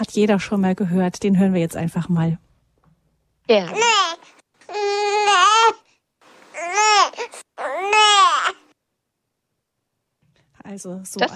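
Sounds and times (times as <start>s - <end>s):
speech: 0.1s - 2.5s, 3.5s - 4.3s, 10.7s - 11.3s
baby crying to ask for milk: 3.5s - 5.9s, 6.5s - 8.8s.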